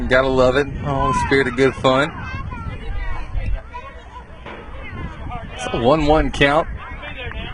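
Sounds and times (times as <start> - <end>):
baseball crowd cheering and chatter: 0.0 - 7.5
speech: 0.1 - 2.2, 5.6 - 6.8.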